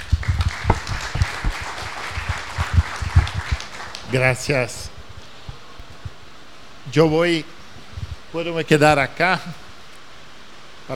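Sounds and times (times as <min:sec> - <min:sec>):
audience applause: 0:00.0 - 0:04.2
speech: 0:04.1 - 0:04.9, 0:06.9 - 0:07.6, 0:08.3 - 0:09.6.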